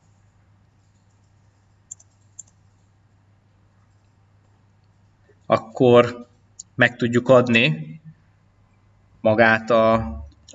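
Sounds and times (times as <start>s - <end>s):
low steady hum: 0.0s - 10.5s
computer mouse double-click: 1.9s - 2.6s
speech: 5.5s - 8.0s, 9.2s - 10.5s.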